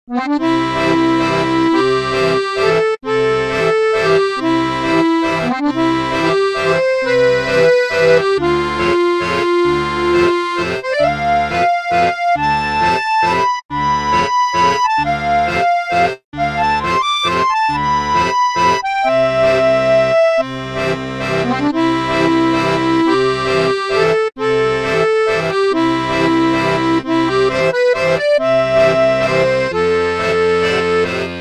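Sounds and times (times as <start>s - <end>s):
accordion music: 0.1s - 31.3s.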